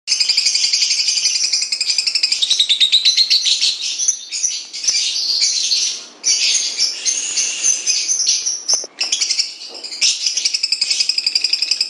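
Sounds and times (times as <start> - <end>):
Lutino lovebird giving the ngekek chattering call: 0.1 - 11.8.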